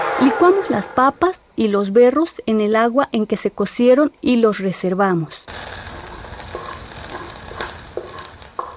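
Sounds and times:
speech: 0:00.2 - 0:05.5
leek and onion frying in pan: 0:05.5 - 0:08.7.

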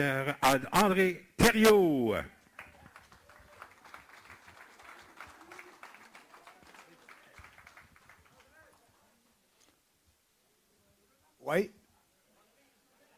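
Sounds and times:
speech: 0:00.0 - 0:02.4, 0:11.5 - 0:11.8
audience applause: 0:02.6 - 0:08.8.

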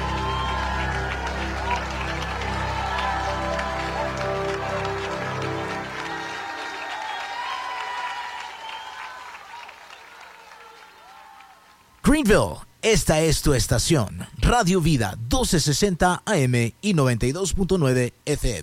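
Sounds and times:
music: 0:00.0 - 0:08.2
audience applause for a guest: 0:00.0 - 0:12.0
speech: 0:12.1 - 0:18.6.

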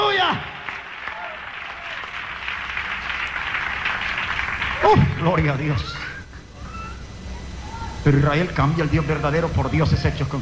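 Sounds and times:
audience applause: 0:00.0 - 0:06.2
speech: 0:04.9 - 0:06.0, 0:08.0 - 0:10.4.

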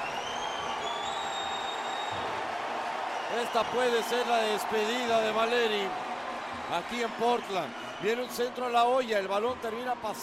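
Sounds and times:
long high-pitched whistles: 0:00.0 - 0:02.3
stadium crowd applauding a substitution: 0:00.0 - 0:10.2
speech: 0:03.3 - 0:06.0, 0:06.6 - 0:10.2.

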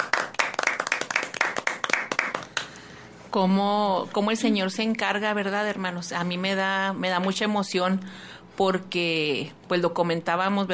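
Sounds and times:
small audience clapping: 0:00.0 - 0:02.8
speech: 0:03.3 - 0:10.7.

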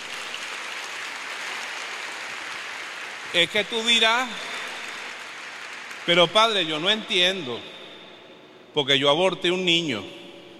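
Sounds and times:
audience applause: 0:00.0 - 0:07.0
speech: 0:03.3 - 0:04.5, 0:06.0 - 0:07.8, 0:08.7 - 0:10.2.

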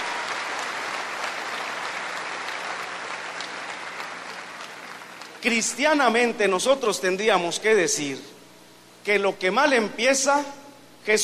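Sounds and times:
audience applause: 0:00.0 - 0:05.4
speech: 0:05.4 - 0:08.3, 0:09.0 - 0:11.2.

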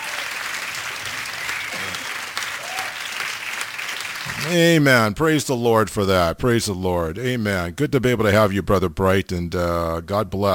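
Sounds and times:
group applauding: 0:00.0 - 0:04.8
speech: 0:04.3 - 0:10.5.

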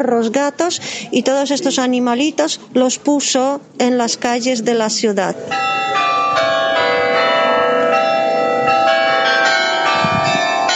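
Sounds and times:
speech: 0:00.0 - 0:06.1
44 carillon bells of the old town hall chiming the hour: 0:05.4 - 0:10.7.

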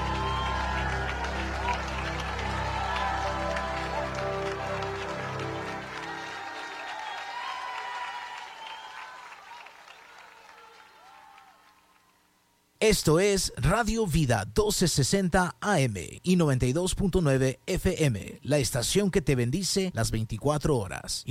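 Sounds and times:
audience applause: 0:00.0 - 0:12.2
speech: 0:12.8 - 0:21.3.

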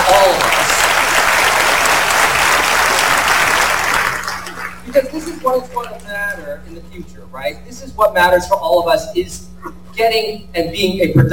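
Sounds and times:
audience applause: 0:00.0 - 0:06.0
speech: 0:05.0 - 0:11.3.

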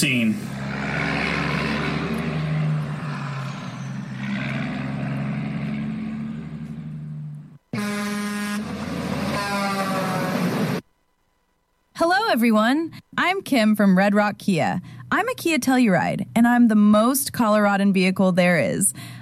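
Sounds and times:
speech: 0:00.0 - 0:00.8, 0:12.4 - 0:19.2
convoy of 18-wheeler semi trucks engine drone: 0:00.0 - 0:10.8
18-wheeler semi truck air horns blaring: 0:05.2 - 0:10.8.

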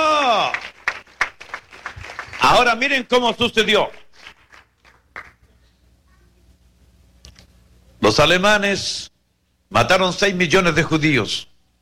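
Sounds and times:
audience applauding: 0:00.0 - 0:03.0, 0:04.1 - 0:05.5
speech: 0:02.5 - 0:04.0, 0:08.1 - 0:09.1, 0:09.7 - 0:11.5.

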